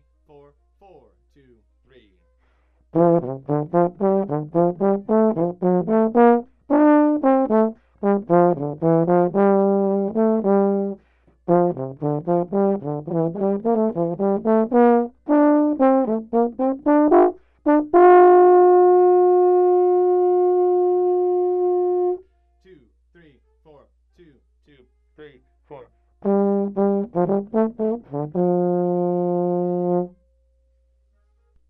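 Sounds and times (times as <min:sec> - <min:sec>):
trombone solo: 0:02.9 - 0:22.2, 0:26.2 - 0:30.2.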